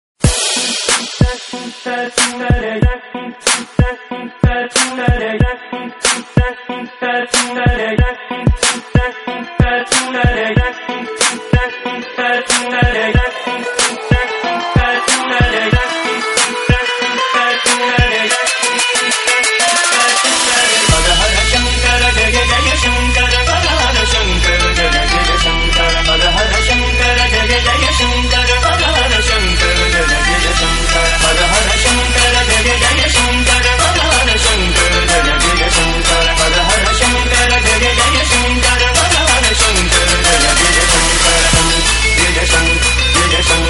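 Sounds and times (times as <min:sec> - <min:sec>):
Turkish trap music: 0:00.2 - 0:43.6.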